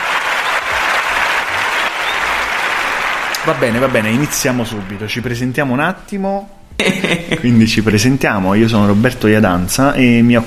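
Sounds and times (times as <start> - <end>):
applause: 0.0 - 5.4
speech: 3.4 - 10.4
laughter: 6.8 - 7.8.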